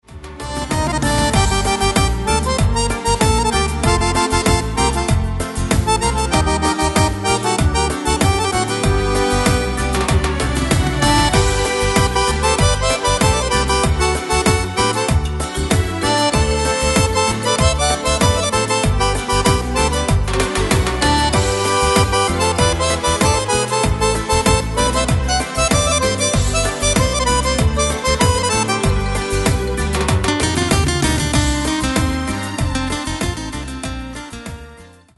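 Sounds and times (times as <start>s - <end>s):
gypsy cumbia music: 0.0s - 35.1s.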